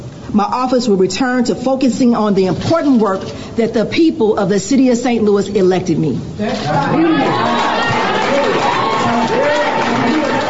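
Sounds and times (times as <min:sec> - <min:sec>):
speech: 0:00.3 - 0:07.7
crowd cheering around a speaker: 0:06.4 - 0:10.4.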